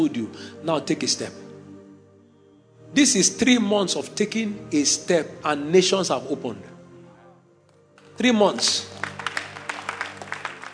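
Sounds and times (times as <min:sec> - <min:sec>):
speech: 0:00.0 - 0:01.5, 0:02.9 - 0:06.7, 0:08.2 - 0:08.9
audience clapping: 0:08.0 - 0:10.7.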